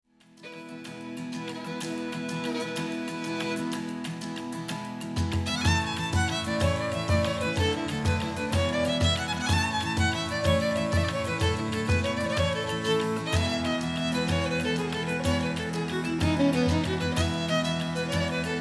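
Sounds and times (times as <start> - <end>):
Irish dance music: 0.4 - 18.6.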